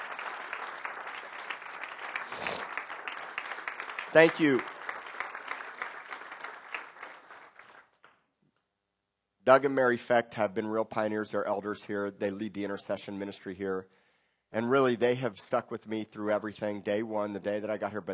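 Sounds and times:
audience hand clapping: 0:00.0 - 0:08.3
speech: 0:04.1 - 0:04.7, 0:09.5 - 0:18.1.

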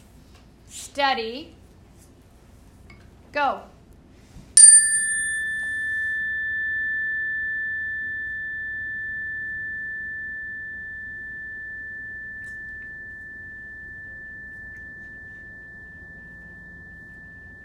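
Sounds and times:
speech: 0:01.0 - 0:01.6, 0:03.3 - 0:03.8
bell struck once: 0:04.6 - 0:17.6.

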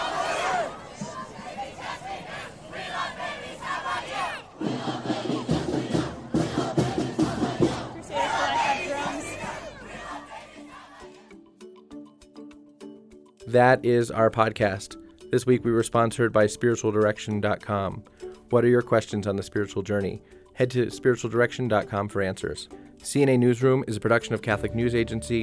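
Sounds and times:
two crowds chanting and cheering against each other: 0:00.0 - 0:11.4
speech: 0:13.5 - 0:25.4.

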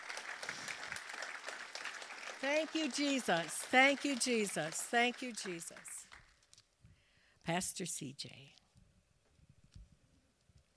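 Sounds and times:
audience hand clapping: 0:00.0 - 0:06.5
speech: 0:02.4 - 0:05.9, 0:07.5 - 0:08.6.

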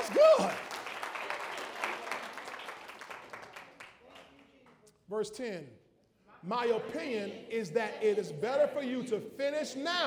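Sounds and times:
audience clapping: 0:00.0 - 0:04.8
speech: 0:05.1 - 0:05.8, 0:06.4 - 0:10.0.

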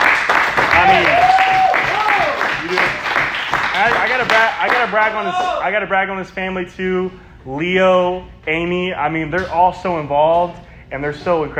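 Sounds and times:
crowd applauding: 0:00.0 - 0:05.6
whoops and shouting voices: 0:00.7 - 0:02.5, 0:05.1 - 0:05.7
speech: 0:00.8 - 0:01.2, 0:03.8 - 0:11.5.

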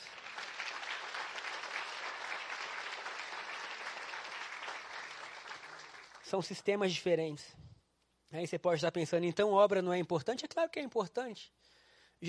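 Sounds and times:
audience applause: 0:00.0 - 0:06.3
speech: 0:06.3 - 0:07.6, 0:08.3 - 0:12.2.

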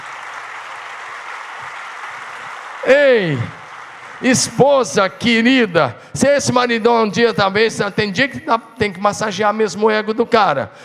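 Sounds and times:
audience applauding loudly: 0:00.0 - 0:05.8
speech: 0:02.8 - 0:03.6, 0:04.2 - 0:10.8.

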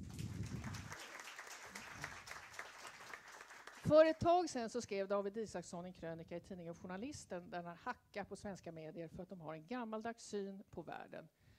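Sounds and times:
audience applause for the panel: 0:00.0 - 0:03.9
speech: 0:03.9 - 0:11.4.

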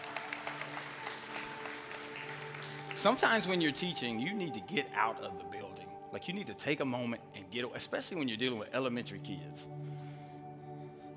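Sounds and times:
audience clapping: 0:00.0 - 0:04.8
speech: 0:03.0 - 0:10.0.

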